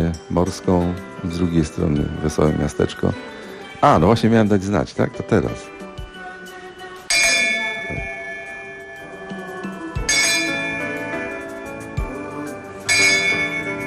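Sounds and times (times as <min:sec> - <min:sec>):
speech: 0:00.1 - 0:05.8
ship's bell striking the half-hour: 0:07.1 - 0:11.9, 0:12.7 - 0:13.8.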